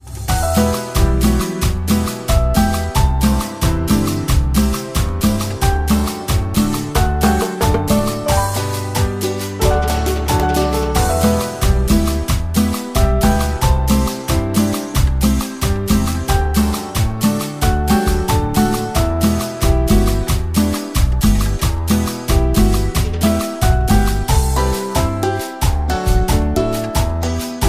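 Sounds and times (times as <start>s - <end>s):
sad music: 0.4s - 27.6s.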